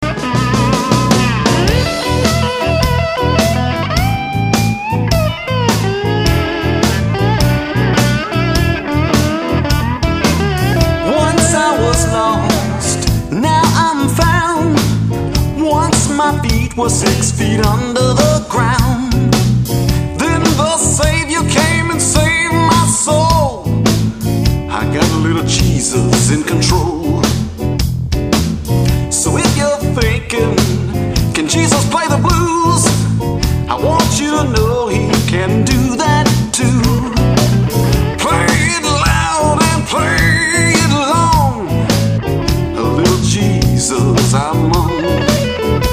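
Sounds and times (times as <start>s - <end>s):
blues music: 0.0s - 45.9s.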